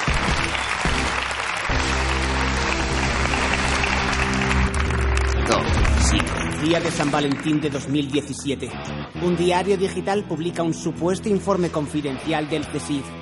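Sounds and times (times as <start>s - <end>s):
audience applause: 0.0s - 8.6s
speech: 6.6s - 13.2s.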